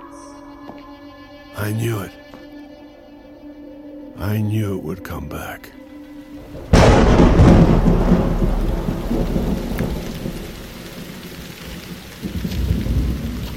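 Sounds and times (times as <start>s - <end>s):
speech: 1.6s - 2.2s, 4.2s - 5.8s, 6.5s - 9.6s
steady heavy rain: 6.3s - 13.5s
thunder crack rolling into deep rumble: 6.4s - 13.5s.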